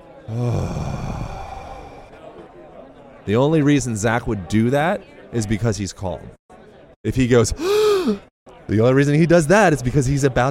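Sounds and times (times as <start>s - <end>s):
speech: 0.3s - 0.9s, 3.2s - 6.4s, 7.0s - 10.4s
long calming exhalation: 0.3s - 2.2s, 7.6s - 8.3s.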